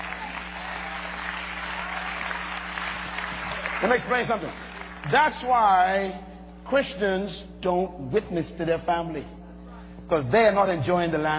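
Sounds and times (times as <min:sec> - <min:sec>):
audience clapping hands: 0:00.0 - 0:05.6
speech: 0:03.8 - 0:09.4, 0:10.1 - 0:11.3.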